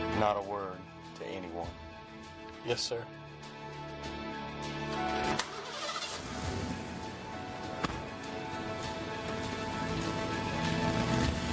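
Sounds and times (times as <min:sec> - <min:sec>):
speech: 0:00.2 - 0:01.8, 0:02.6 - 0:03.2
truck engine starting: 0:04.9 - 0:11.5.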